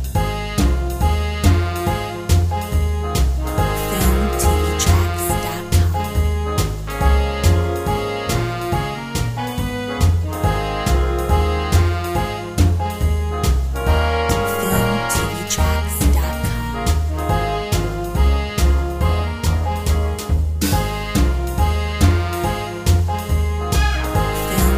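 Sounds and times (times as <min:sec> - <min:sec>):
moody swing banjo: 0:00.1 - 0:24.7.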